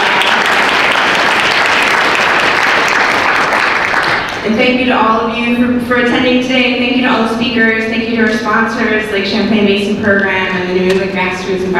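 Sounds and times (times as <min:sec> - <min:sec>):
audience applause: 0:00.0 - 0:04.4
speech: 0:04.4 - 0:11.7.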